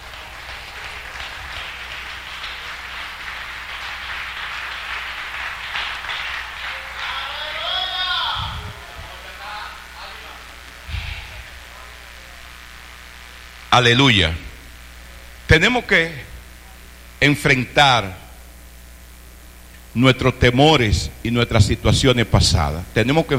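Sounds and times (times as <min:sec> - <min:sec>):
audience applause: 0:00.0 - 0:10.4
speech: 0:13.8 - 0:14.4, 0:15.5 - 0:16.3, 0:17.2 - 0:18.2, 0:20.0 - 0:23.3.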